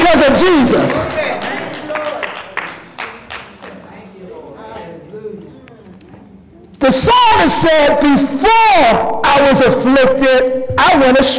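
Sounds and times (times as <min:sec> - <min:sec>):
audience clapping hands: 0:00.0 - 0:06.2
speech: 0:06.9 - 0:11.3.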